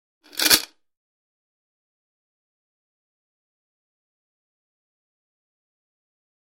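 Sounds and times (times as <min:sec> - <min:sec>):
chains rattling: 0:00.3 - 0:00.7.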